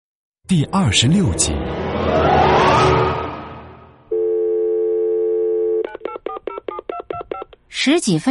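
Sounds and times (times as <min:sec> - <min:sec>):
speech: 0:00.5 - 0:03.2, 0:07.8 - 0:08.2
telephone ringing tone: 0:04.1 - 0:05.9.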